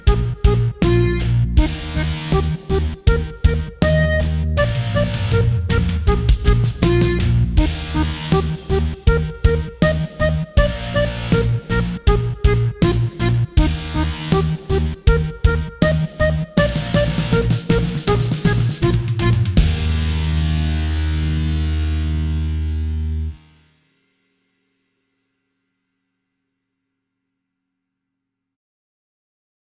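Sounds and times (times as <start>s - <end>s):
eighth-note rock beat: 0.0s - 23.6s.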